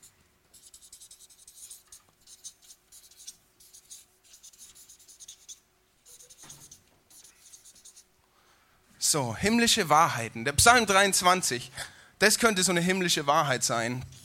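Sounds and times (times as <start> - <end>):
pen or marker scratching on paper drawing circles and writing: 0.5 - 8.1, 14.1 - 14.2
speech: 9.1 - 14.2.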